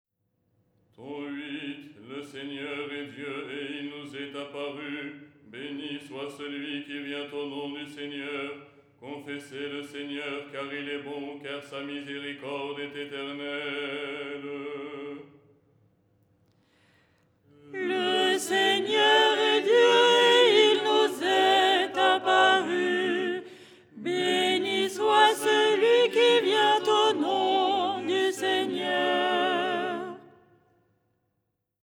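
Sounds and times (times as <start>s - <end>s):
soprano singing: 17.7s - 30.3s.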